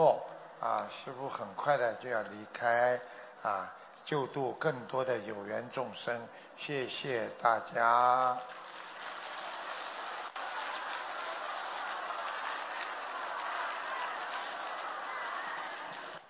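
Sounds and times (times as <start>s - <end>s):
speech: 0.1s - 8.7s
applause from a large crowd: 8.2s - 16.2s.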